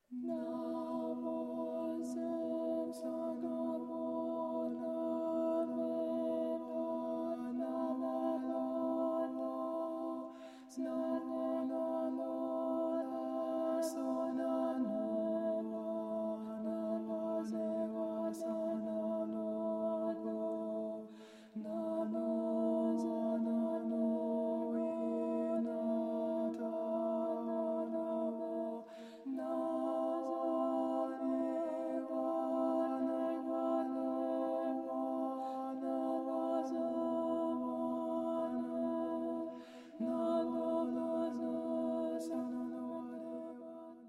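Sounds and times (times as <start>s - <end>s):
chanting: 0.0s - 44.0s.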